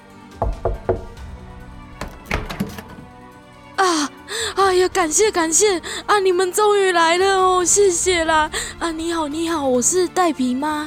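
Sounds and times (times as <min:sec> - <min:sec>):
speech: 0:00.4 - 0:01.0, 0:04.7 - 0:10.8
knocking on a door: 0:00.4 - 0:01.2, 0:01.9 - 0:03.1
door thumping and rattling: 0:00.4 - 0:03.2.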